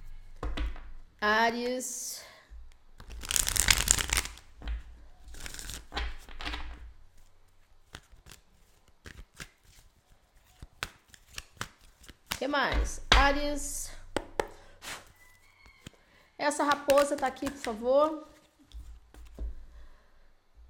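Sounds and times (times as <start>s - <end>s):
speech: 1.2s - 2.3s, 12.4s - 13.8s, 16.4s - 18.3s
tarot cards being shuffled: 3.0s - 4.6s, 5.2s - 6.6s, 7.2s - 12.4s.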